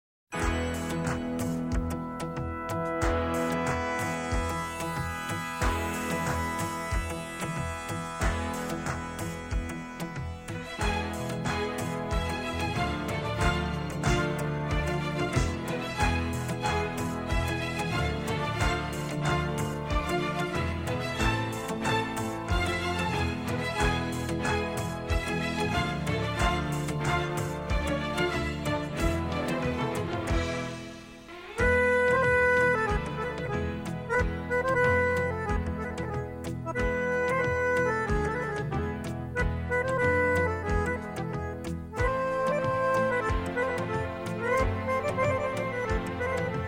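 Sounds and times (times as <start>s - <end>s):
instrumental music: 0.3s - 46.6s.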